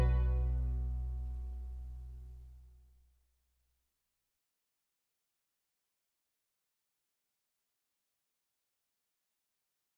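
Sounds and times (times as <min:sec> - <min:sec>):
concerto in C minor for strings and harpsichord: 0:00.0 - 0:01.3.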